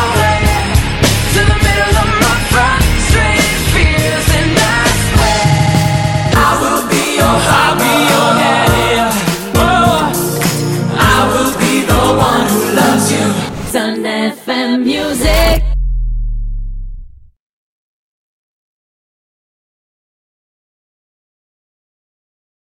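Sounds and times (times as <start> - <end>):
montage music: 0.0 - 17.4.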